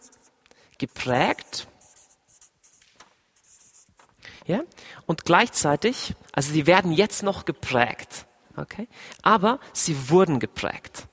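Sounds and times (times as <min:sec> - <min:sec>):
writing on a board: 0:00.0 - 0:04.2
speech: 0:00.8 - 0:01.7, 0:04.5 - 0:11.1.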